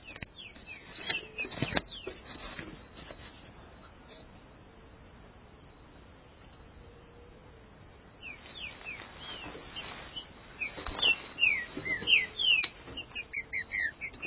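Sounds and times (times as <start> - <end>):
background hiss: 0.0 - 14.2
green-winged saltator whistled song: 10.6 - 14.1.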